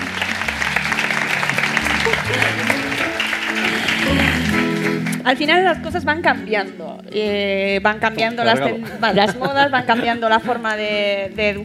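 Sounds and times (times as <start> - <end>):
laughter: 0.0 - 4.8, 8.4 - 11.2
audience applause: 0.0 - 5.3
speech: 5.3 - 11.6.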